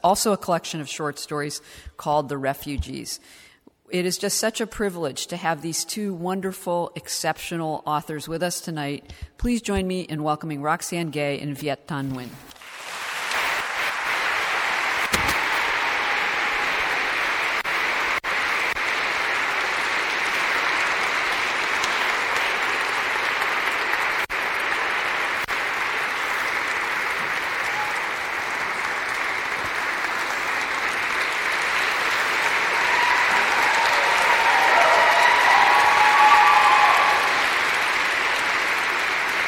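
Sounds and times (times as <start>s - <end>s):
speech: 0.0s - 12.5s
audience applause: 12.6s - 39.4s.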